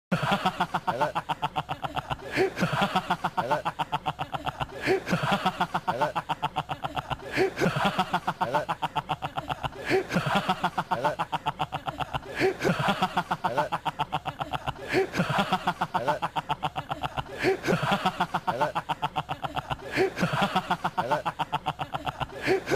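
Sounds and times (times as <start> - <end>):
person laughing: 0.1 - 22.7.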